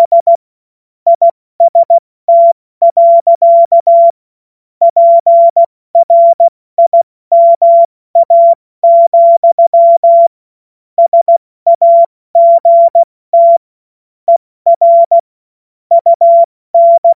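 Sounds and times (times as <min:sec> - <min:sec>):
CW Morse code beeps: 0:00.0 - 0:00.4, 0:01.1 - 0:04.2, 0:04.8 - 0:10.3, 0:11.0 - 0:13.6, 0:14.3 - 0:15.2, 0:15.9 - 0:17.1.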